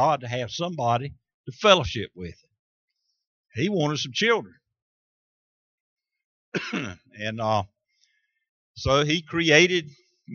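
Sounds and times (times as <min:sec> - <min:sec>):
speech: 0:00.0 - 0:02.5, 0:03.5 - 0:04.6, 0:06.5 - 0:07.7, 0:08.8 - 0:10.3
preacher coughing and clearing throat mid-sermon: 0:06.6 - 0:07.1.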